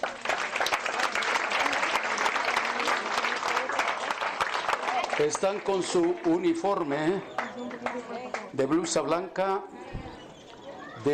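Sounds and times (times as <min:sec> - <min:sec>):
audience applause: 0:00.0 - 0:08.6
speech: 0:05.2 - 0:09.8.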